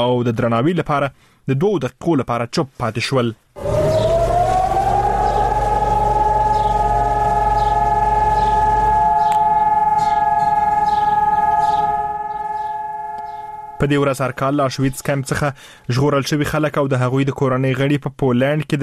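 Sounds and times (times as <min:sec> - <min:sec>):
speech: 0:00.0 - 0:03.7, 0:13.8 - 0:18.8
low rumble: 0:03.6 - 0:15.0
memorial alarm siren wailing in Jerusalem: 0:03.6 - 0:15.5.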